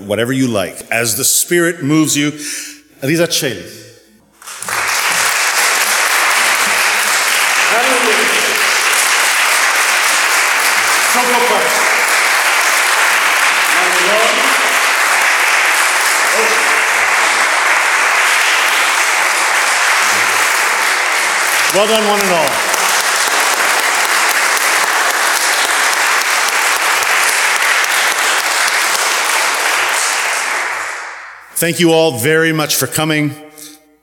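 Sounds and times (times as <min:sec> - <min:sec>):
speech: 0:00.0 - 0:03.9, 0:21.8 - 0:22.6, 0:31.6 - 0:33.5
audience applause: 0:04.4 - 0:31.4.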